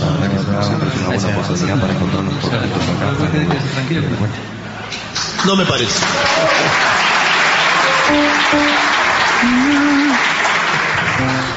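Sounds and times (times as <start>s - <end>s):
speech: 1.1s - 4.6s, 5.2s - 7.2s, 8.1s - 10.3s
audience applause: 5.4s - 11.5s.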